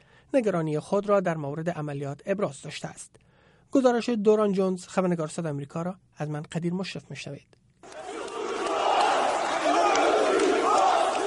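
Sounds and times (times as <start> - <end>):
speech: 0.3 - 7.6
large crowd of protesters shouting slogans: 7.8 - 11.2.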